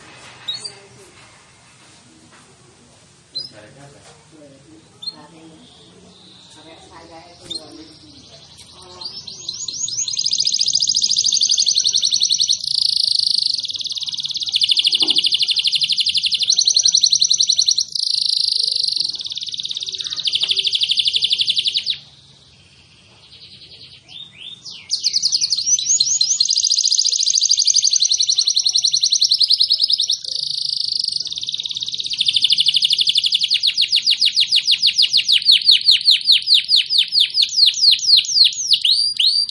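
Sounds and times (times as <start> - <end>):
faint low noise: 0.0 - 39.4
canary rapid buzzy trilling song: 7.4 - 22.0, 22.9 - 39.4.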